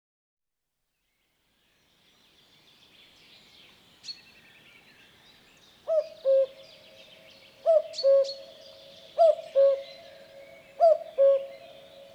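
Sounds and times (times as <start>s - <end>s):
common cuckoo calling a clear low cu-coo: 7.7s - 12.1s.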